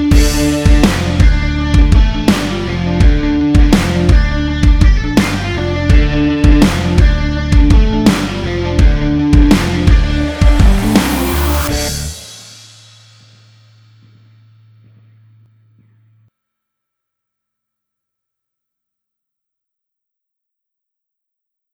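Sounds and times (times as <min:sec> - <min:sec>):
tension music: 0:00.1 - 0:12.3.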